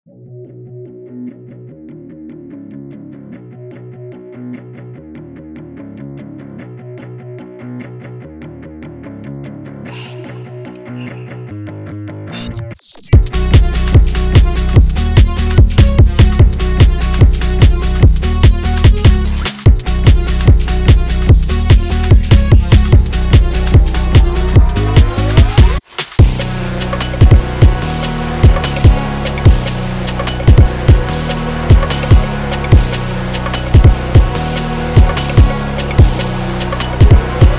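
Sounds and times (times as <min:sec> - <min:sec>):
default beat: 0:12.4 - 0:37.5.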